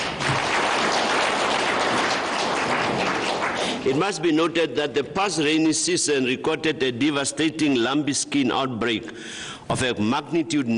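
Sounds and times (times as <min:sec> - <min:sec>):
crowd applause: 0:00.0 - 0:04.2
speech: 0:03.8 - 0:10.7.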